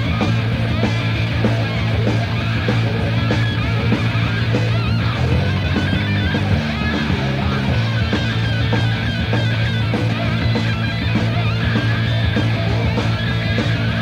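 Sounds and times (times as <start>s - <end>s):
heavy metal noise: 0.0s - 14.0s.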